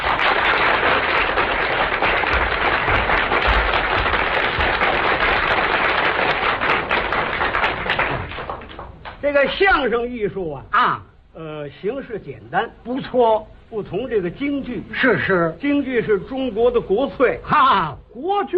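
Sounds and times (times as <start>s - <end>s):
crowd clapping: 0.0s - 9.3s
speech: 9.4s - 18.5s.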